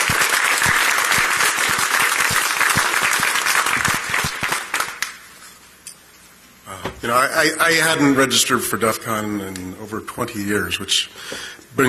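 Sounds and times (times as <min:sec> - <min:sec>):
audience applause: 0:00.0 - 0:05.3
speech: 0:07.0 - 0:11.8.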